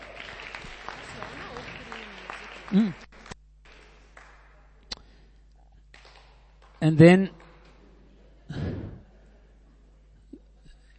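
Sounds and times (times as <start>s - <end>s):
audience applause: 0.0s - 4.8s
speech: 2.7s - 3.0s, 6.8s - 7.4s.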